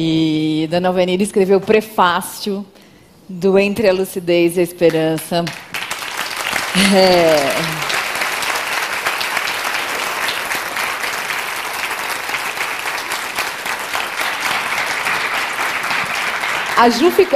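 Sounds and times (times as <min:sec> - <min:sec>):
speech: 0:00.0 - 0:05.7, 0:06.8 - 0:07.8, 0:16.8 - 0:17.3
audience applause: 0:05.5 - 0:17.3.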